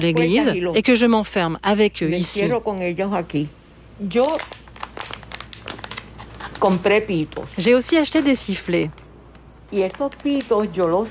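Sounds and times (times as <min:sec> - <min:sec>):
speech: 0:00.0 - 0:04.6, 0:06.6 - 0:09.0, 0:09.7 - 0:11.0
plastic package crinkling as it is opened: 0:04.1 - 0:11.0.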